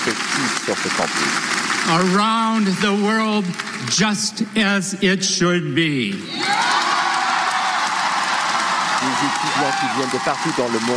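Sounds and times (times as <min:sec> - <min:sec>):
speech: 0:00.1 - 0:06.7, 0:09.1 - 0:10.9
crowd cheering for Harvard president Alan Garber: 0:06.3 - 0:10.9.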